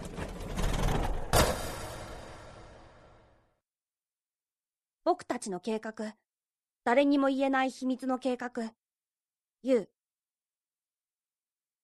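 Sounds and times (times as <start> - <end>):
pet shop's rolling shutter coming down: 0.0 - 2.6
speech: 5.1 - 6.2, 6.8 - 8.8, 9.6 - 10.0.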